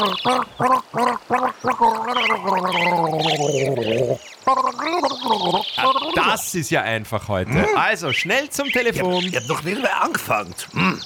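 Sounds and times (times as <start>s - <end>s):
gargling: 0.0s - 6.2s, 7.4s - 7.9s, 9.4s - 11.0s
speech: 0.0s - 11.0s.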